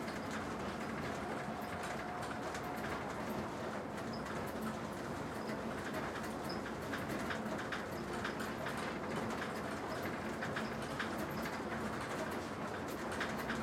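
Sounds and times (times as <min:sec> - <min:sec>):
train hub rattle: 0:00.0 - 0:13.6.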